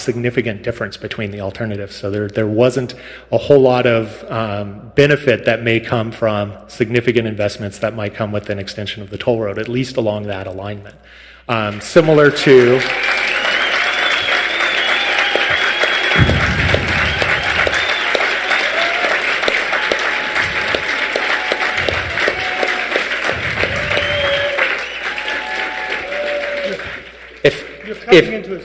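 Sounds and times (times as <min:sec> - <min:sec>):
speech: 0:00.0 - 0:13.1, 0:27.4 - 0:28.6
audience applause: 0:12.1 - 0:28.6.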